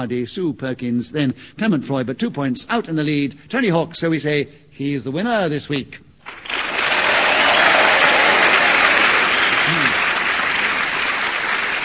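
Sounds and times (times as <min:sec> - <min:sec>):
speech: 0:00.0 - 0:06.7
studio audience applause: 0:06.2 - 0:11.8.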